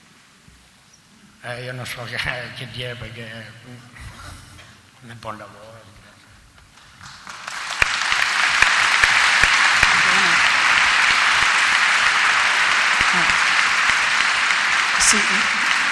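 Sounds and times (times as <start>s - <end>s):
speech: 1.4s - 4.1s, 5.0s - 6.0s, 15.1s - 15.7s
audience applause: 6.6s - 15.8s.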